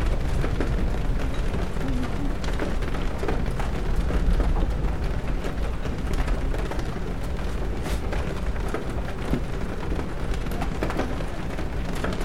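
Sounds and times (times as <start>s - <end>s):
rain pattering on a bookstore window: 0.0s - 12.2s.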